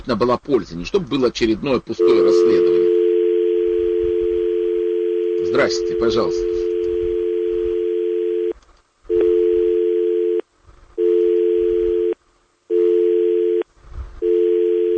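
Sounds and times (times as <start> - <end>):
speech: 0.0 - 2.8, 5.5 - 6.5
telephone tone beeping: 2.0 - 10.4, 11.0 - 13.6, 14.2 - 14.9
faint rumble: 2.3 - 5.0, 5.8 - 12.7.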